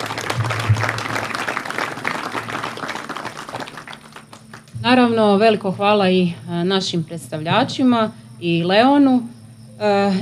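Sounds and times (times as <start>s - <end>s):
audience applause at a community cultural event: 0.0s - 4.8s
speech: 4.8s - 10.2s.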